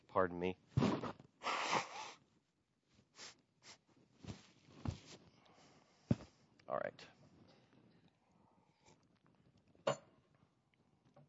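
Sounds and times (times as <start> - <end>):
speech: 0.2 - 1.2
person blowing nose: 0.8 - 2.2, 3.1 - 3.8.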